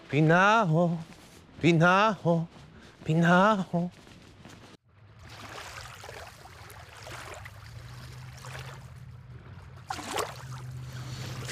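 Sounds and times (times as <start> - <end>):
speech: 0.1 - 4.0
sea water lapping at the harbour: 5.0 - 11.5.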